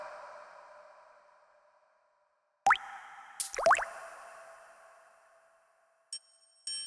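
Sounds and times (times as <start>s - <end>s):
water triangle with reverb: 2.7s - 4.5s.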